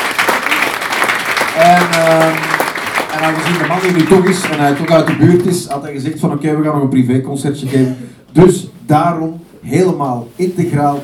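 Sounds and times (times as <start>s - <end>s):
audience applause for musicians: 0.0s - 6.2s
speech: 3.2s - 11.0s.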